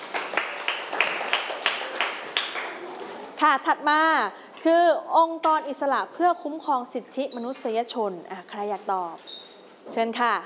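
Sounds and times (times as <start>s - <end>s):
group clapping in rhythm: 0.0s - 3.1s
speech: 3.4s - 10.4s.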